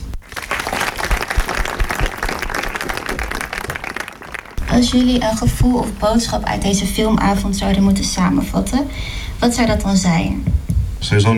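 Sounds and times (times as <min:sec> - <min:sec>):
audience applause greeting guests at a film night screening event: 0:00.0 - 0:05.7
speech: 0:04.8 - 0:11.3.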